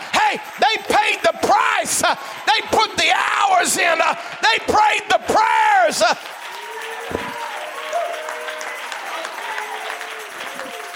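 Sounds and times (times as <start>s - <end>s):
crowd clapping: 0.0s - 10.9s
speech: 0.3s - 6.5s.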